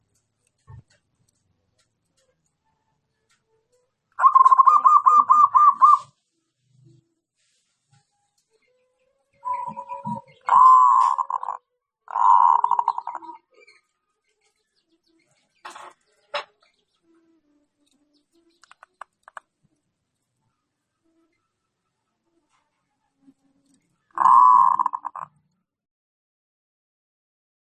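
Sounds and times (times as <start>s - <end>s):
zebra dove cooing: 4.2s - 6.1s, 9.4s - 13.5s, 24.1s - 25.4s.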